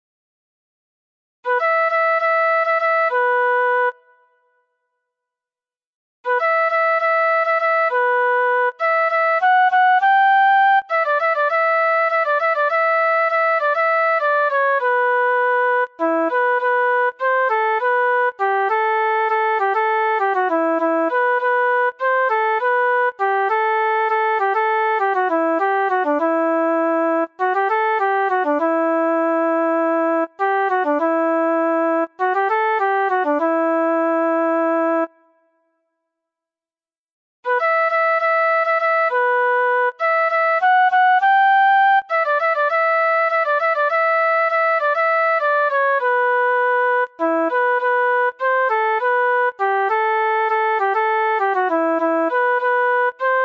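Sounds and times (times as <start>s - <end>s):
flute: 1.4s - 4.6s, 6.2s - 35.8s, 37.5s - 53.4s.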